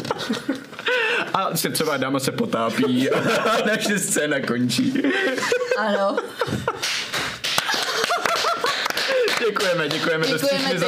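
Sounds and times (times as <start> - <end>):
laughter: 0.0 - 1.6, 2.6 - 10.8
speech: 1.4 - 7.0, 9.5 - 10.8
applause: 6.8 - 10.8.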